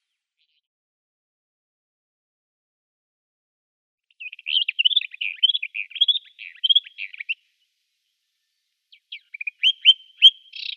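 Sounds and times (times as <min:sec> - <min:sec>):
Eastern Orphean Warbler singing: 0:04.1 - 0:07.6, 0:08.3 - 0:10.7.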